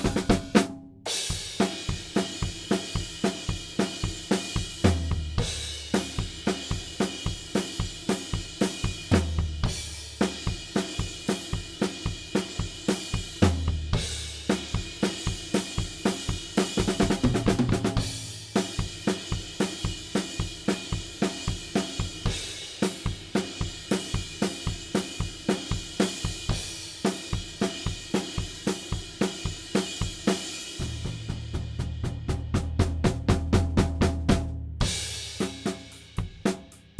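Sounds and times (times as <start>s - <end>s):
drums: 0.0s - 36.9s.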